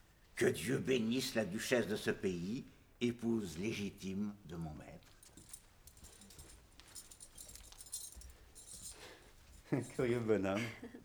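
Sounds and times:
speech: 0.4s - 5.1s, 9.7s - 11.0s
bunch of keys jingling in hand: 4.8s - 10.1s.

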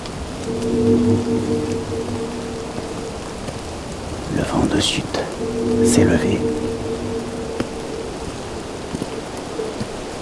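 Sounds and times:
steady rain: 0.0s - 10.1s
low droning hum: 0.2s - 3.9s, 5.3s - 9.6s
speech: 4.5s - 6.7s.

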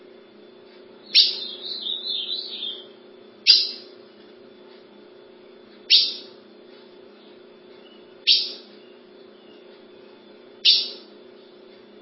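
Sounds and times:
ultramarine grosbeak call notes: 1.0s - 2.9s, 5.9s - 6.4s, 7.8s - 9.7s, 10.6s - 11.1s.

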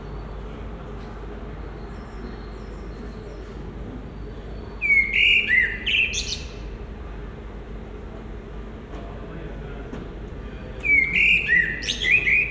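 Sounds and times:
common blackbird song by a residence building in Brussels: 1.4s - 6.8s, 10.8s - 12.4s.

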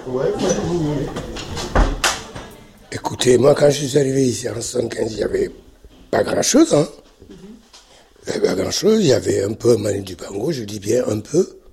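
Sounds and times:
speech: 0.0s - 1.7s, 2.9s - 7.4s, 8.3s - 11.6s
door being closed: 0.5s - 2.5s.

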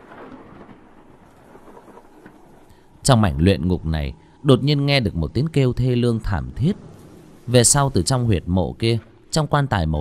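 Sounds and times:
thunder: 0.0s - 4.4s, 6.2s - 9.4s
heavy rain: 0.0s - 9.9s
speech: 3.0s - 6.9s, 7.5s - 9.9s.

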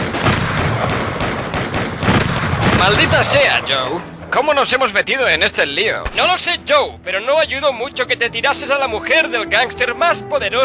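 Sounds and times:
explosion sound effects from the commercial version of a film: 0.0s - 4.1s
speech: 2.8s - 10.6s.

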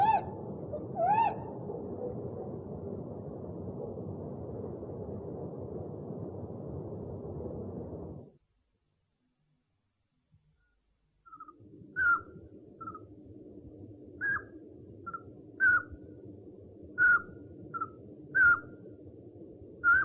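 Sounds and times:
owl hooting: 0.0s - 2.2s, 11.3s - 13.1s, 14.2s - 16.0s, 17.0s - 18.8s, 19.8s - 20.0s.

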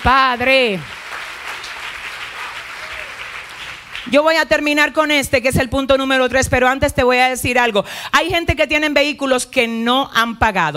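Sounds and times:
speech: 0.0s - 1.0s, 4.1s - 10.7s
audience applause at a church service: 0.0s - 4.1s.

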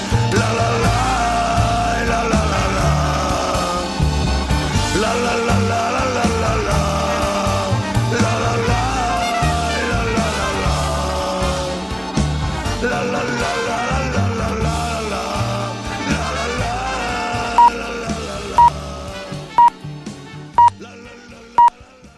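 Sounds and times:
music: 0.0s - 22.1s
practice radio time signal beeps: 20.6s - 20.8s.

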